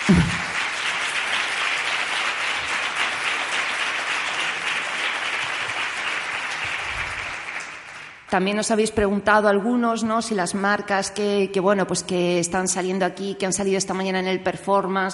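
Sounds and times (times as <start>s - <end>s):
audience applause: 0.0s - 8.2s
speech: 0.1s - 0.4s, 8.3s - 15.1s.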